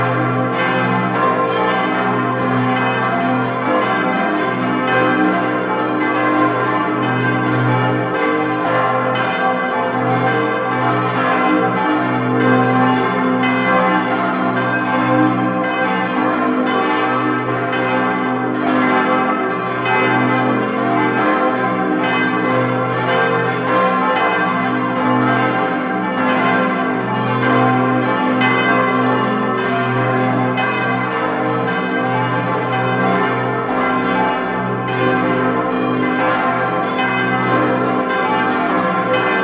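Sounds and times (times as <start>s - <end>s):
bells ringing: 0.0s - 39.4s.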